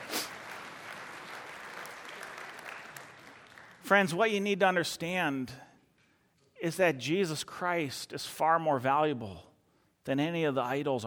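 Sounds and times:
applause: 0:00.0 - 0:04.0
speech: 0:03.9 - 0:05.6, 0:06.6 - 0:11.0.

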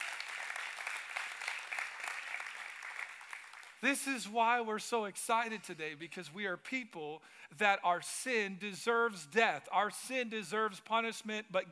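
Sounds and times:
audience clapping: 0:00.0 - 0:04.0
speech: 0:03.8 - 0:11.7.

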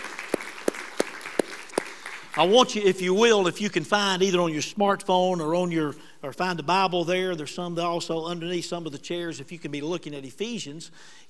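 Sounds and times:
audience applause: 0:00.0 - 0:02.7
speech: 0:02.4 - 0:11.2.

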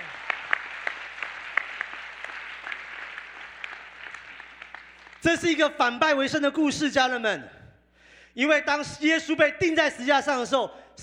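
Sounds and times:
audience clapping hands: 0:00.0 - 0:05.8
speech: 0:05.2 - 0:07.6, 0:08.4 - 0:11.0.

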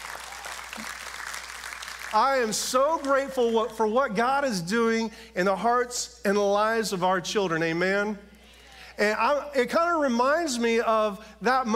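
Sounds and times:
audience applause: 0:00.0 - 0:03.5
speech: 0:02.1 - 0:08.3, 0:09.0 - 0:11.7.

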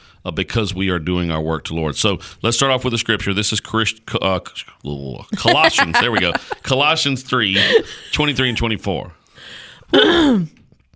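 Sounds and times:
speech: 0:00.2 - 0:10.6
laughter: 0:05.4 - 0:06.8, 0:07.4 - 0:08.7
person clearing throat during a sermon: 0:09.9 - 0:10.6.

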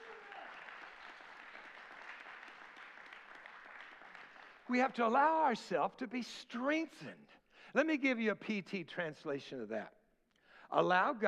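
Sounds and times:
audience clapping in a large room: 0:00.0 - 0:05.3
speech: 0:04.7 - 0:10.0, 0:10.7 - 0:11.2.

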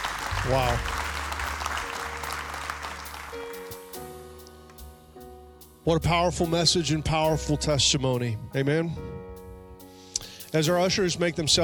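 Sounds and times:
audience applause: 0:00.0 - 0:03.9
speech: 0:00.4 - 0:01.0, 0:05.8 - 0:09.2, 0:10.5 - 0:11.6.

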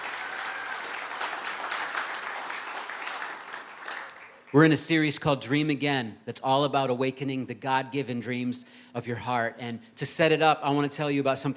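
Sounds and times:
audience applause: 0:00.0 - 0:04.7
speech: 0:04.5 - 0:11.5.

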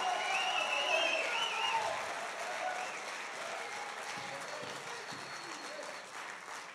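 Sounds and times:
audience clapping: 0:00.0 - 0:06.7.

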